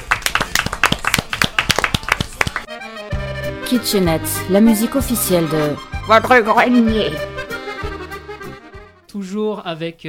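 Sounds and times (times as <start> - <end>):
audience applause: 0.0 - 2.7
speech: 3.7 - 7.4, 9.2 - 10.0.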